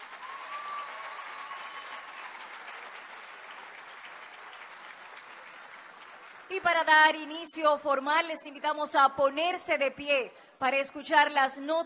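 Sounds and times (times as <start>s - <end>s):
audience applause: 0.0s - 6.7s
speech: 6.6s - 11.8s.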